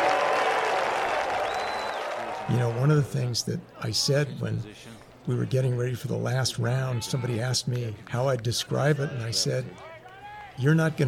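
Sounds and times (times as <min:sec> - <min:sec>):
golf crowd standing ovation: 0:00.0 - 0:03.0
speech: 0:02.7 - 0:09.9, 0:10.6 - 0:11.0.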